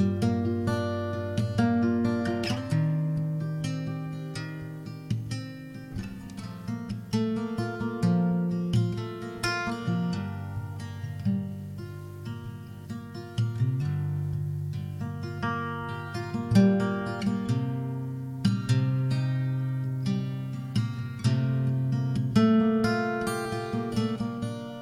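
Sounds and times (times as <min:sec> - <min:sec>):
acoustic guitar arpeggio in G minor at 130 BPM: 0:00.0 - 0:24.8.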